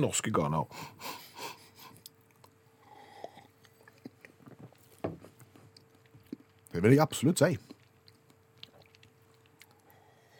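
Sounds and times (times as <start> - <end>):
speech: 0.0 - 1.2, 6.8 - 7.7
person chewing food made from a Malagasy recipe: 1.7 - 6.7, 7.6 - 10.3.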